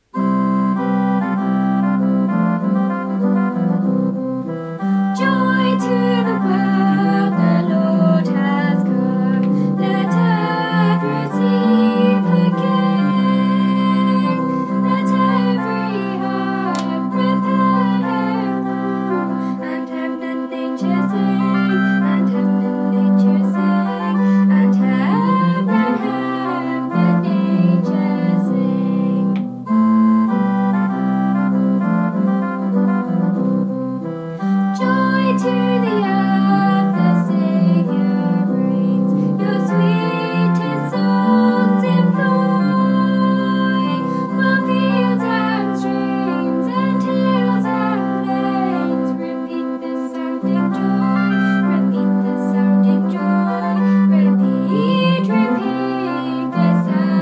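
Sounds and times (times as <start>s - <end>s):
soprano singing: 0.0s - 57.1s.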